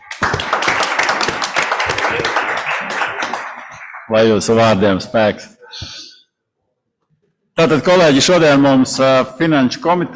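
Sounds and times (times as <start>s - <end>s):
applause: 0.0s - 4.8s
speech: 4.1s - 6.0s, 7.6s - 10.1s.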